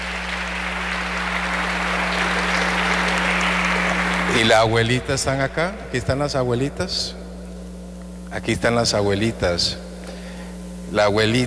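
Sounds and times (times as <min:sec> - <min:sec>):
audience applause: 0:00.0 - 0:05.5
low steady hum: 0:00.0 - 0:11.4
speech: 0:04.4 - 0:07.2, 0:08.3 - 0:09.9, 0:10.9 - 0:11.4.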